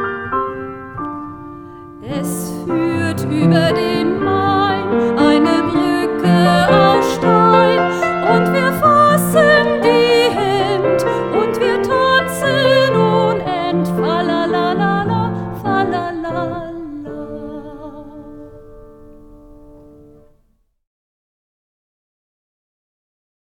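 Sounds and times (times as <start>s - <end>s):
singing: 2.1s - 18.5s.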